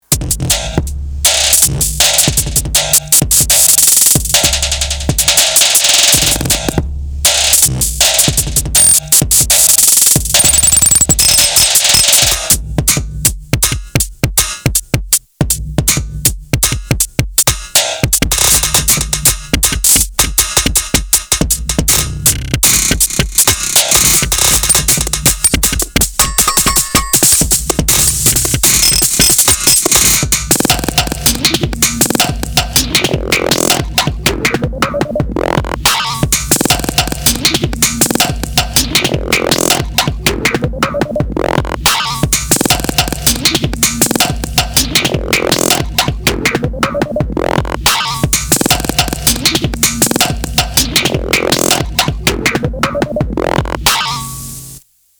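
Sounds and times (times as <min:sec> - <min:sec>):
metal beat: 0:00.0 - 0:54.7.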